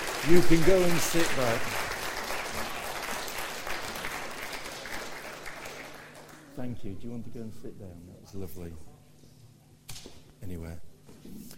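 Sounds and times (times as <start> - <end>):
audience applause: 0.0 - 6.6
speech: 0.2 - 1.9, 6.6 - 8.9, 10.4 - 11.5.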